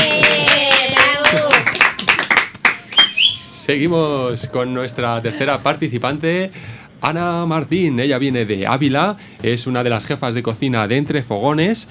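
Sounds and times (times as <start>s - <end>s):
crowd applause: 0.0s - 3.6s
speech: 3.7s - 11.8s.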